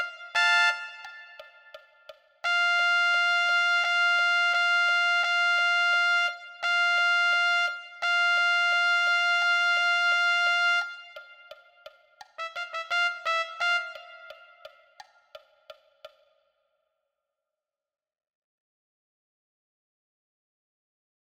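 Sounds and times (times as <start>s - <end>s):
trumpet: 0.0s - 15.0s.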